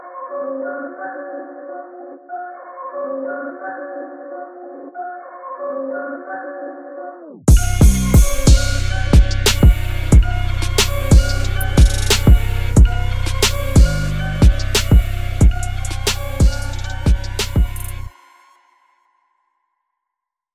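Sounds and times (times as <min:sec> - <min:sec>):
instrumental music: 0:07.4 - 0:18.1.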